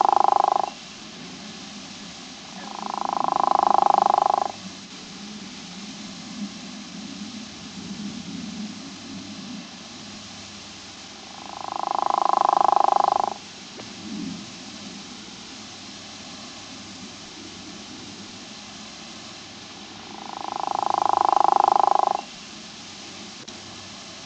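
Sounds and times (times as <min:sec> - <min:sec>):
true frog of family Ranidae calling: 0:00.0 - 0:00.9, 0:02.5 - 0:04.6, 0:11.2 - 0:13.4, 0:19.7 - 0:22.4.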